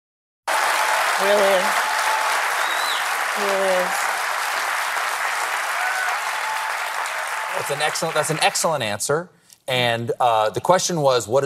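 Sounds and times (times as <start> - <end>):
studio audience applause: 0.5 - 9.0
speech: 1.2 - 1.9, 3.4 - 4.2, 7.6 - 11.4.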